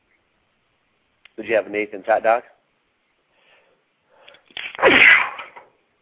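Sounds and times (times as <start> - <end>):
speech: 1.4 - 2.6
loud sneeze: 4.6 - 5.6.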